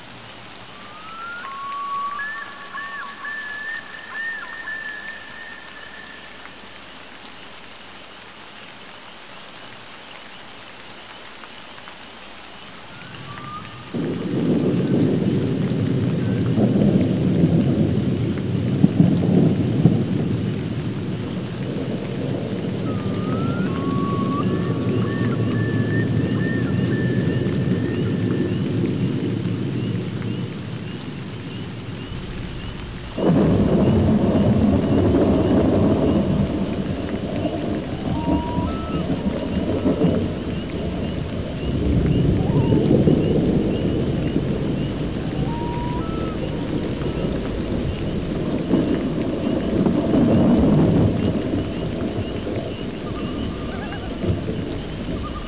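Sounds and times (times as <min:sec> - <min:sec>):
thunder: 0:13.0 - 0:55.4.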